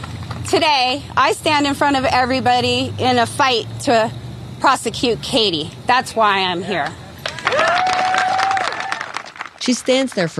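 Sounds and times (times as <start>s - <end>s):
speech: 0.5s - 7.9s, 9.6s - 10.3s
people clapping: 6.8s - 10.3s
people cheering: 7.0s - 10.3s.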